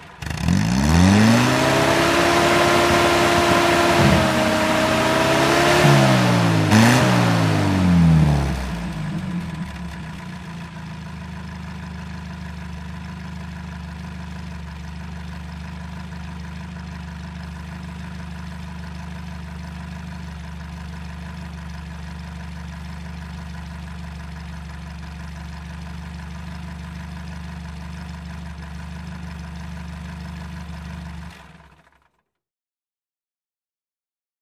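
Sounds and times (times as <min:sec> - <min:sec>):
army jeep engine starting and revving: 0:00.0 - 0:10.0.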